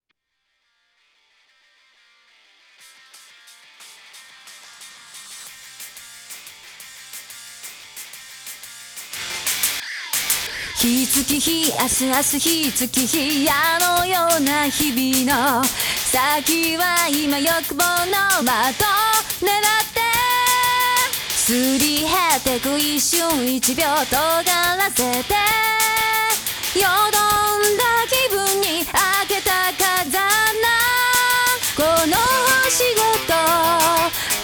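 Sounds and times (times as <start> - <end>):
a cappella singing: 9.9 - 34.4.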